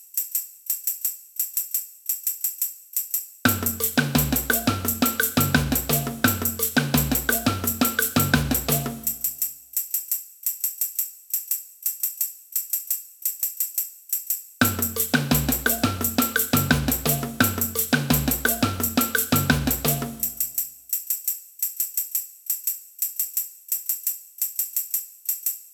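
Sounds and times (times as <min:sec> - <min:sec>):
samba band playing: 0:03.5 - 0:09.3, 0:14.6 - 0:20.5.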